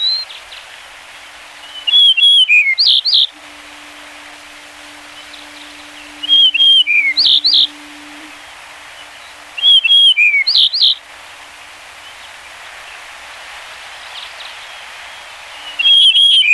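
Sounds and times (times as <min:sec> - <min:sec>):
yellow-breasted bunting singing whistled and slurred notes: 0:01.6 - 0:11.1, 0:14.7 - 0:16.5.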